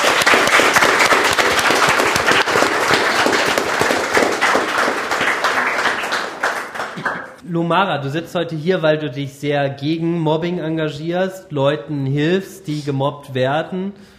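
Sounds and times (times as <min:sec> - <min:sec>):
audience applause: 0:00.0 - 0:07.4
speech: 0:07.5 - 0:14.1.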